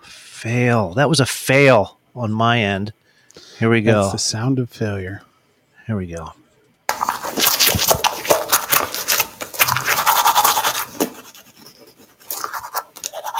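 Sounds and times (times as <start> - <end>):
speech: 0.4 - 5.3, 5.9 - 6.4
teeth being brushed with a toothbrush: 6.9 - 13.3.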